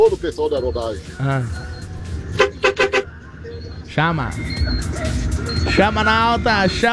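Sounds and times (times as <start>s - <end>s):
speech: 0.0s - 1.6s, 4.0s - 6.9s
road and engine rumble: 0.0s - 6.9s
truck horn blasts: 2.3s - 3.2s.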